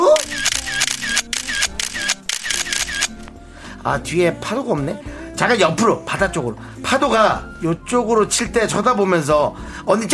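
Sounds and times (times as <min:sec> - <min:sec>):
camera shutter clicking during photo shoot: 0:00.0 - 0:03.3
speech: 0:03.8 - 0:10.1.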